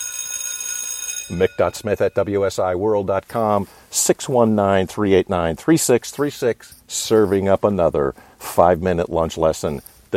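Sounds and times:
school lunch bell ringing: 0.0 - 2.8
speech: 1.3 - 10.1.

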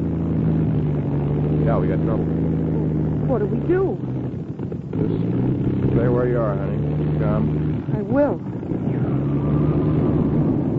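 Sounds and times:
small airplane engine droning in flight after engine trouble: 0.0 - 10.7
speech: 1.7 - 2.5, 3.3 - 4.1, 5.0 - 8.9.

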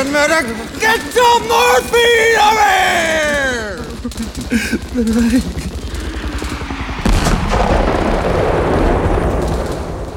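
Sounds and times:
speech: 0.0 - 5.7
laughter: 0.0 - 6.9
rapid bursts of gunfire in a Hollywood-style battle sound effect: 0.0 - 10.1
sustained rumble of explosions: 0.0 - 10.1
heavy artillery boom: 5.7 - 10.1.

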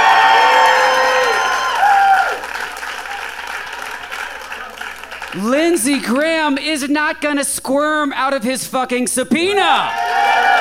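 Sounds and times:
audience applause: 0.0 - 6.0, 9.8 - 10.6
speech: 5.5 - 10.0.

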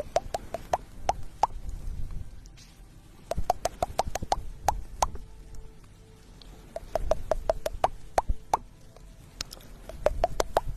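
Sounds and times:
ear picking: 0.0 - 1.8, 3.2 - 5.2, 6.4 - 8.7, 9.4 - 10.7
ear massage: 0.0 - 5.3, 6.4 - 8.8, 9.4 - 10.7.

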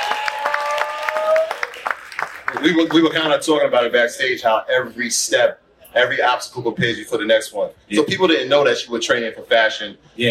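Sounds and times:
audience applause at an onstage interview: 0.0 - 3.0
speech: 2.5 - 10.2.

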